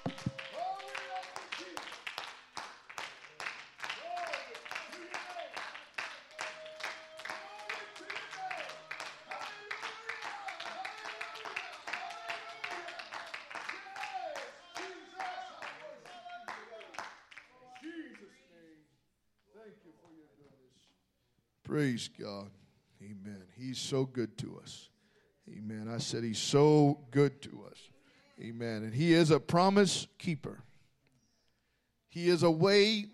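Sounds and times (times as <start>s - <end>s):
audience clapping: 0.0s - 18.4s
speech: 21.8s - 22.6s, 23.3s - 24.9s, 25.5s - 30.6s, 32.2s - 33.1s.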